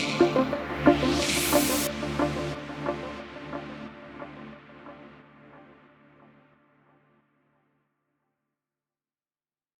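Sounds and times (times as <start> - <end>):
deep house music: 0.0 - 6.8.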